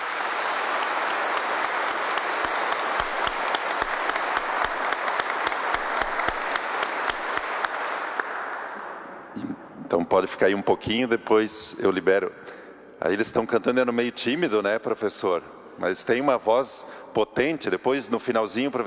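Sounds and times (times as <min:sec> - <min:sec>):
crowd applause: 0:00.0 - 0:08.9
speech: 0:10.0 - 0:18.8.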